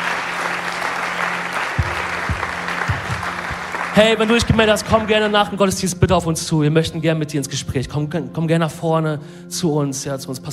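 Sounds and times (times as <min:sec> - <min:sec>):
audience applause: 0:00.0 - 0:05.4
speech: 0:04.0 - 0:10.5.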